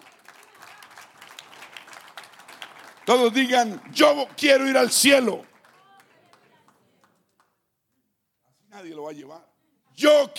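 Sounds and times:
audience applauding: 0:00.0 - 0:07.5
speech: 0:03.1 - 0:05.5, 0:09.1 - 0:10.3.

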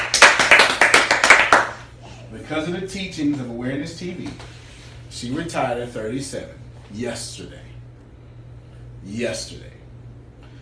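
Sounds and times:
audience clapping: 0:00.0 - 0:01.9
speech: 0:02.5 - 0:07.7, 0:09.0 - 0:09.7.

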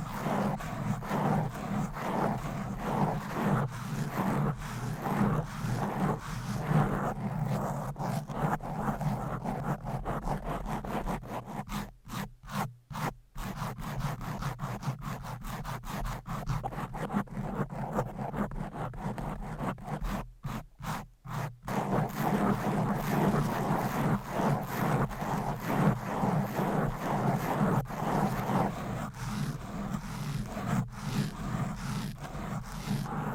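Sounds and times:
fast aggressive scratching on a microphone with covers and nails: 0:00.0 - 0:33.3.

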